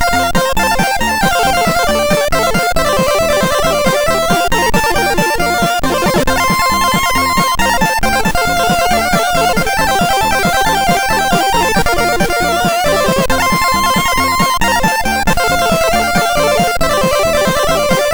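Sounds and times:
humppa chiptune music on a MOS6581R4 sound chip: 0.0 - 18.1.

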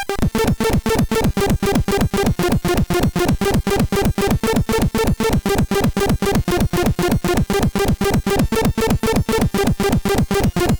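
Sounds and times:
MOS6581R4 chip music: 0.2 - 10.7.

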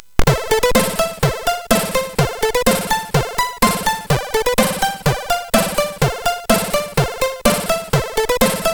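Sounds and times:
MOS6581R4 SID chip intro music: 0.3 - 8.7.

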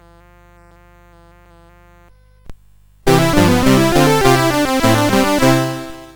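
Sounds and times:
noise sounds on CSG8580R5 chip: 3.1 - 6.1.

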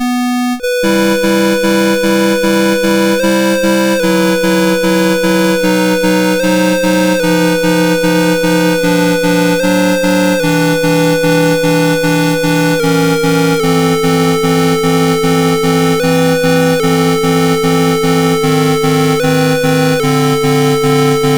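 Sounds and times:
MOS6581R3 chip prelude in E minor: 0.0 - 21.3.

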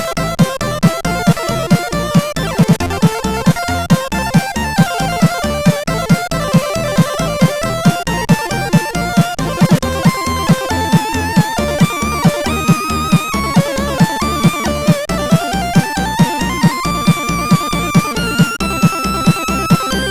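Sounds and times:
humppa music on a CSG8580R5 sound chip: 0.0 - 20.0.

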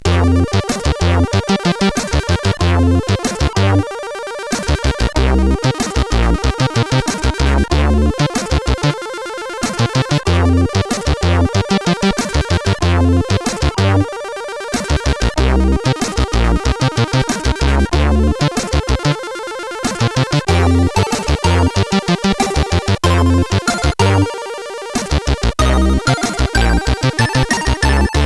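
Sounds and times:
SID CSG8580 chiptune synthesizer: 0.0 - 28.2.

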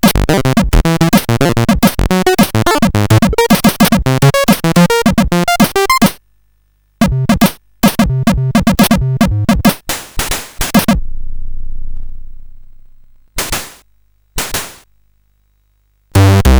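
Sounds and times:
chiptune music on CSG 8580R5 chip: 0.0 - 6.2, 7.0 - 9.8, 16.2 - 16.5.

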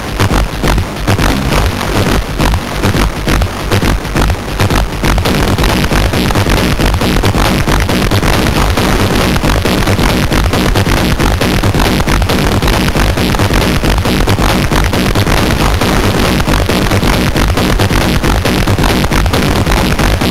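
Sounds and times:
music on a MOS6581R2 SID chip: 0.0 - 20.2.

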